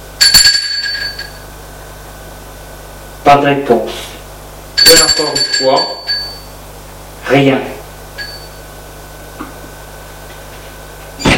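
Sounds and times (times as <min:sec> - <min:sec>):
doorbell ringing: 0:00.2 - 0:01.4, 0:04.8 - 0:06.6, 0:08.2 - 0:08.7
speech: 0:03.2 - 0:04.2, 0:04.9 - 0:06.0, 0:07.3 - 0:07.8.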